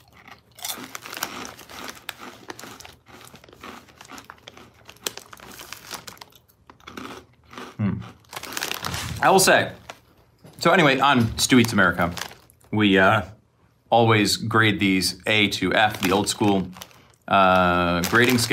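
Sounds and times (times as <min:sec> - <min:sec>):
crunchy chewing of cinnamon corn snack chips: 0:00.0 - 0:10.4, 0:11.4 - 0:12.8, 0:15.8 - 0:18.5
crinkly rustling: 0:00.8 - 0:06.4, 0:08.2 - 0:12.7, 0:15.8 - 0:18.5
speech: 0:09.2 - 0:09.8, 0:10.6 - 0:18.5.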